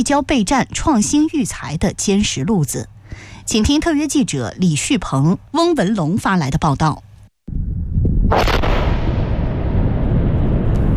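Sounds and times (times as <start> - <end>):
speech: 0.0 - 7.1
missile striking target and exploding: 8.2 - 10.9.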